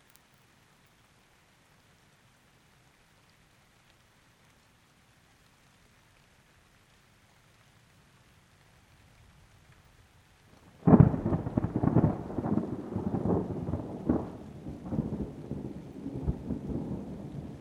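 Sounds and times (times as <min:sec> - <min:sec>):
rain: 0:00.0 - 0:17.5
thunder: 0:10.8 - 0:17.5.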